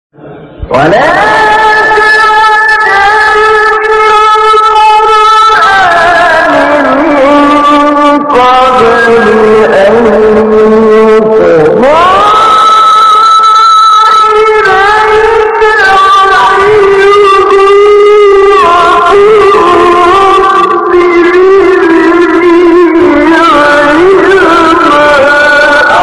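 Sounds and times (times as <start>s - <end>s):
recitation of a verse of the Quran: 0.2s - 25.9s.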